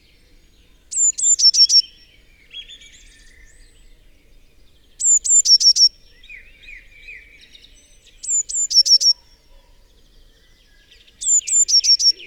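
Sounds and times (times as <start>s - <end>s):
Eurasian blue tit singing: 0.1s - 4.1s, 4.8s - 9.3s, 11.0s - 12.2s.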